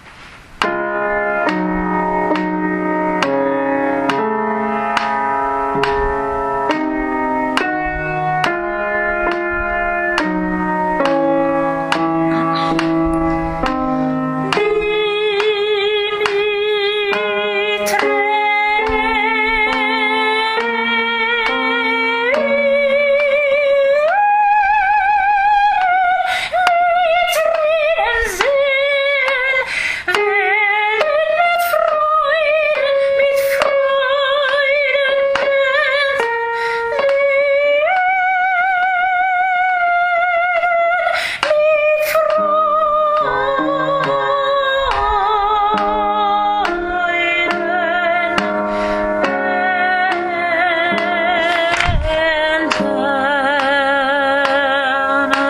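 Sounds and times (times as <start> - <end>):
soprano singing: 0.6 - 55.4.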